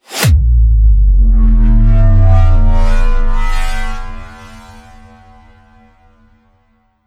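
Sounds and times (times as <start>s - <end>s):
bass: 0.1s - 6.3s.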